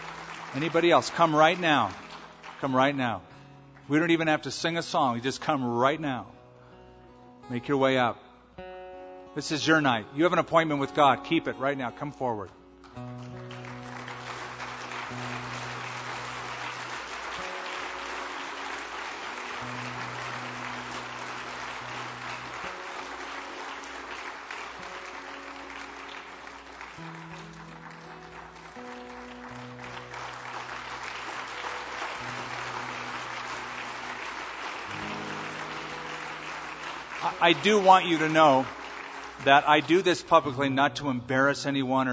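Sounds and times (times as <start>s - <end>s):
music in held organ-like tones: 0.0s - 3.2s, 9.6s - 41.9s
sustained applause from a large crowd: 0.0s - 4.2s, 12.8s - 40.8s
speech: 0.5s - 2.0s, 2.6s - 3.3s, 3.9s - 6.4s, 7.5s - 8.2s, 9.4s - 13.4s, 37.4s - 38.8s, 39.4s - 42.1s.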